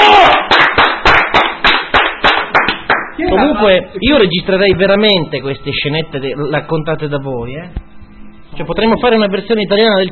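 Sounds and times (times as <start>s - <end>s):
applause: 0.0s - 3.2s
speech: 3.3s - 7.9s, 8.5s - 10.1s.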